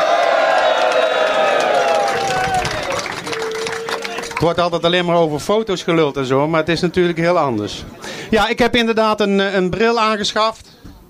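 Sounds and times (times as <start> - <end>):
audience applause: 0.0 - 4.7
speech: 4.4 - 10.7.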